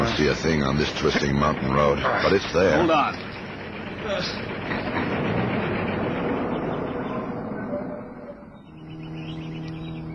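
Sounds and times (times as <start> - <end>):
car following on mountain road: 0.0 - 10.1
speech: 0.2 - 3.3, 4.0 - 5.4.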